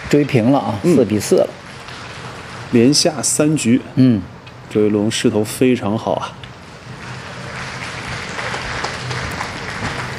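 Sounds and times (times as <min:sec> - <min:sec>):
speech: 0:00.1 - 0:01.6, 0:02.7 - 0:06.4
audience applause at snooker hall: 0:07.0 - 0:10.1.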